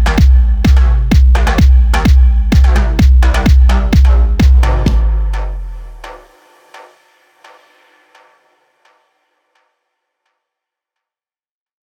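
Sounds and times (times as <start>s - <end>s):
EDM kick drums: 0.0s - 8.8s.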